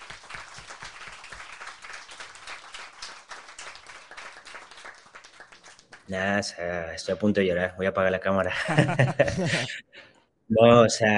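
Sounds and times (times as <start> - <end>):
applause: 0.0 - 6.2
speech: 6.1 - 9.9, 10.5 - 11.1
laughter: 8.5 - 9.8.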